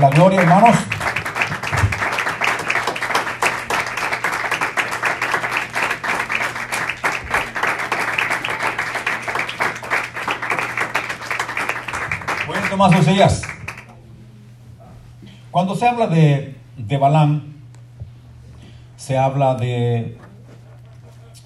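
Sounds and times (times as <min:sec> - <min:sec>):
speech: 0:00.0 - 0:01.1, 0:12.8 - 0:13.5, 0:15.6 - 0:17.5, 0:19.1 - 0:20.2
audience applause: 0:00.0 - 0:13.9
low steady hum: 0:00.0 - 0:21.4.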